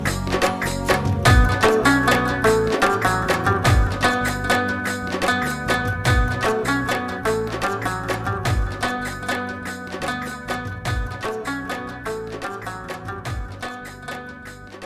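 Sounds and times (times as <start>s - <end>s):
rabab: 0.0s - 14.8s.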